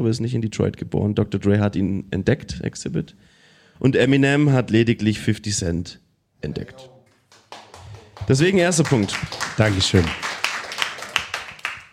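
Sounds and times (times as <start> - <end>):
speech: 0.0 - 6.9, 8.2 - 10.3
small group hand clapping: 7.0 - 11.9.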